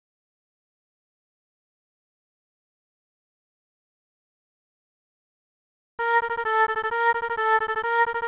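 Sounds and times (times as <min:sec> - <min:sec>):
three-oscillator synthesizer tone: 0:06.0 - 0:08.2.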